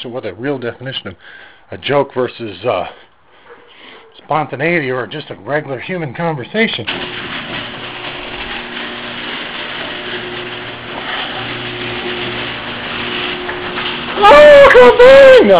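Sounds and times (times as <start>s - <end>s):
speech: 0.0s - 3.1s, 4.2s - 7.4s, 14.3s - 15.5s
garage door opener running: 6.8s - 15.5s.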